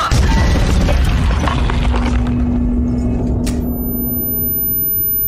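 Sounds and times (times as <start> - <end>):
bomb explosion sound effect: 0.1 - 3.4
faint thin high-pitched ringing tone: 2.9 - 5.2.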